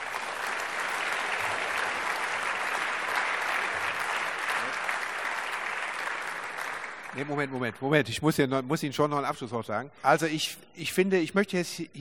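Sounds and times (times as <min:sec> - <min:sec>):
audience applause: 0:00.0 - 0:07.6
speech: 0:07.2 - 0:11.9.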